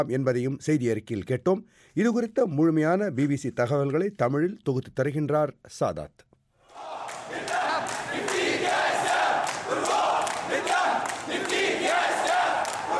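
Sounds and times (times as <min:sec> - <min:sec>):
speech: 0:00.0 - 0:06.9
protesters chanting slogans in a square: 0:06.7 - 0:12.9.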